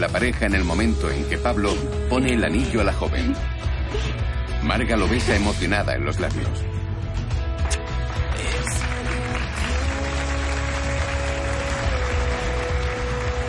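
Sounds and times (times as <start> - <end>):
speech: 0.0 - 6.8
hotel lobby staff applauding an engaged couple: 7.6 - 13.4.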